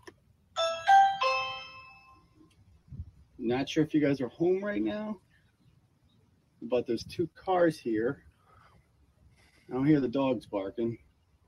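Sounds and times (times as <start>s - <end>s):
doorbell ringing at a house: 0.6s - 2.2s
speech: 3.4s - 5.2s, 6.7s - 8.3s, 9.7s - 11.0s.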